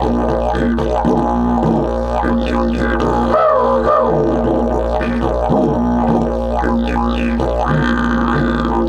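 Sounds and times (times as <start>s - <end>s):
didgeridoo at 108 bpm: 0.0s - 8.8s.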